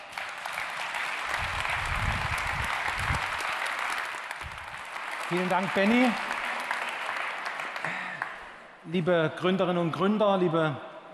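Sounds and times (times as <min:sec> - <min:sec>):
audience applause: 0:00.0 - 0:08.6
speech: 0:05.3 - 0:06.3, 0:08.9 - 0:11.1.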